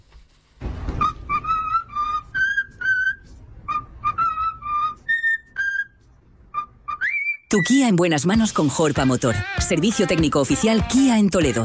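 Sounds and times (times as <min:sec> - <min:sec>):
cockatoo whistling a birthday song: 0:01.0 - 0:07.8
speech: 0:07.5 - 0:11.6.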